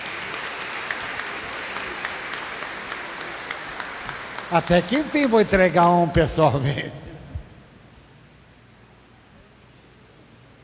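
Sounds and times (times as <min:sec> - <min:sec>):
round of applause: 0:00.0 - 0:06.8
speech: 0:04.5 - 0:07.0.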